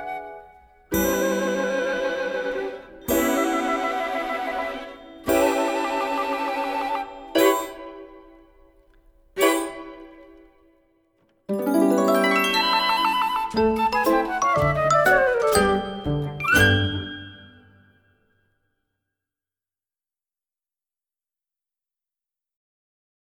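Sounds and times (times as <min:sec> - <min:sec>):
instrumental music: 0:00.0 - 0:18.2.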